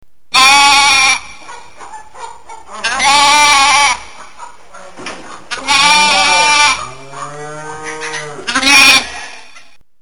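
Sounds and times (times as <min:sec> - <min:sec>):
ram bleating: 0:00.3 - 0:01.5, 0:02.8 - 0:04.2, 0:04.8 - 0:09.7.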